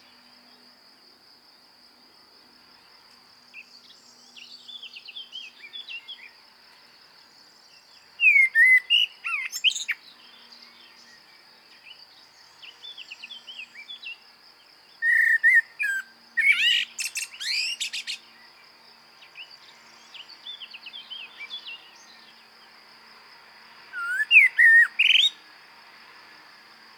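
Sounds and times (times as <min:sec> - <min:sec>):
common blackbird fluty song: 0:03.5 - 0:06.4, 0:07.2 - 0:14.2, 0:14.8 - 0:22.5, 0:23.9 - 0:25.4.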